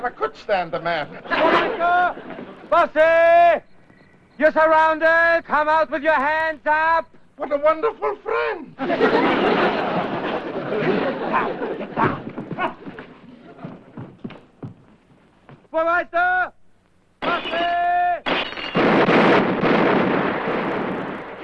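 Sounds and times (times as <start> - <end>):
speech: 0.0 - 3.7, 4.4 - 9.9, 10.8 - 12.8, 15.7 - 16.6
laughter: 0.9 - 2.8, 8.8 - 14.1
people shouting: 11.3 - 12.9
gunshots in a radio drama: 18.2 - 21.4.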